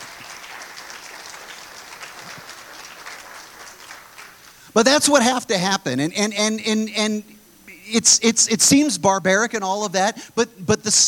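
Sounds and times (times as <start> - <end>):
audience applause: 0.0 - 5.2
speech: 4.8 - 7.3, 7.9 - 11.0.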